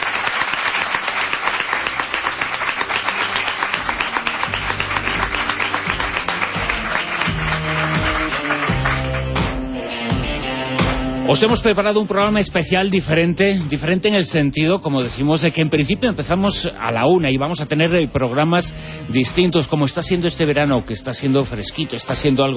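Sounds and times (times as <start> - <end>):
studio audience applause: 0.0 - 11.2
speech: 11.3 - 22.5.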